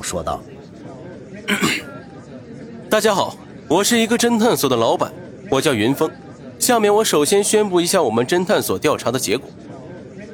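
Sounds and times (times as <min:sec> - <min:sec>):
speech: 0:00.0 - 0:00.6, 0:02.9 - 0:09.7
throat clearing: 0:01.5 - 0:01.9.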